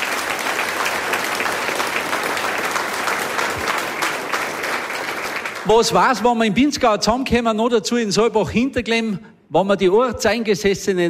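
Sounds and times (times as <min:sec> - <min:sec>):
audience applause: 0:00.0 - 0:06.0
speech: 0:05.6 - 0:11.0.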